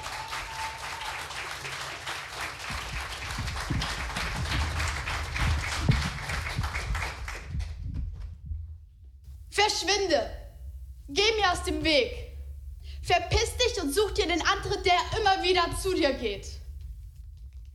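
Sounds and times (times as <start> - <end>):
audience applause welcoming a performer: 0.0 - 7.9
speech: 9.7 - 10.4, 11.1 - 12.2, 13.1 - 16.6.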